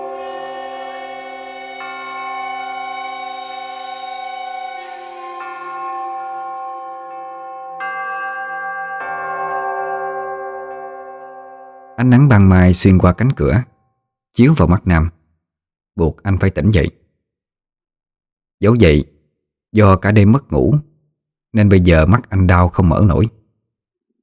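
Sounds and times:
wall clock striking midnight: 0.0s - 12.0s
speech: 12.0s - 13.7s, 14.4s - 15.2s, 16.0s - 17.0s, 18.6s - 19.1s, 19.7s - 20.9s, 21.5s - 23.4s.

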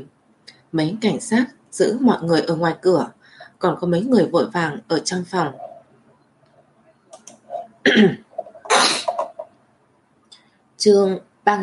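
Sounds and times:
speech: 0.0s - 5.7s, 7.9s - 8.2s, 10.8s - 11.6s
person coughing: 7.9s - 9.4s.

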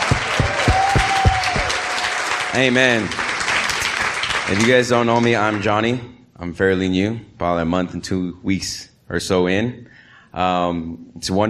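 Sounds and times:
low thumps: 0.0s - 1.8s
audience clapping: 0.0s - 5.9s
speech: 2.5s - 3.2s, 4.5s - 11.4s.

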